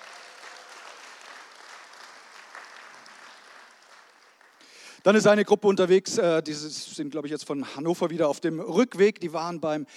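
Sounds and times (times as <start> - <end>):
applause: 0.0 - 5.0
speech: 5.0 - 9.9.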